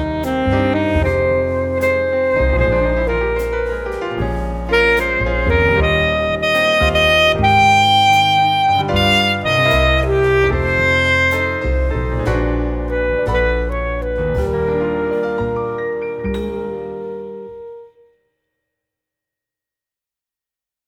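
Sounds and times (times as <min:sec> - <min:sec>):
saxophone: 0:00.0 - 0:18.2.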